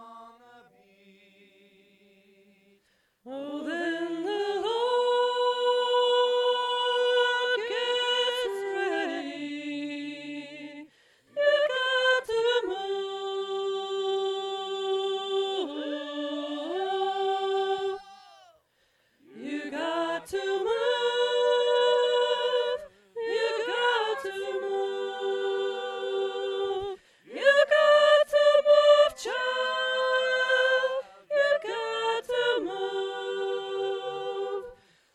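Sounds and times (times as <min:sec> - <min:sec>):
alto voice part singing: 0:03.3 - 0:18.4, 0:19.2 - 0:34.8.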